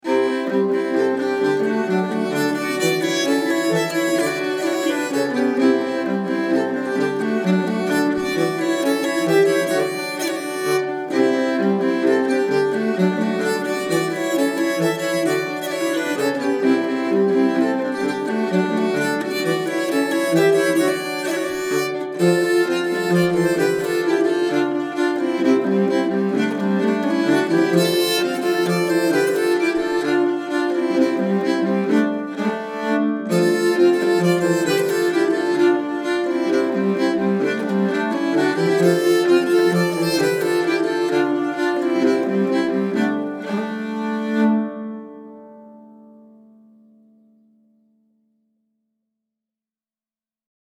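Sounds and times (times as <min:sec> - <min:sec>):
nyckelharpa playing a bangpolska: 0:00.0 - 0:45.4.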